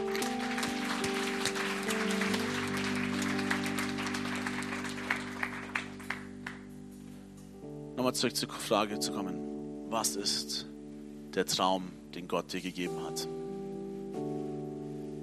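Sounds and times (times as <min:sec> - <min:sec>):
audience clapping: 0:00.0 - 0:06.7
tone: 0:00.0 - 0:15.2
speech: 0:08.0 - 0:10.7, 0:11.4 - 0:13.4.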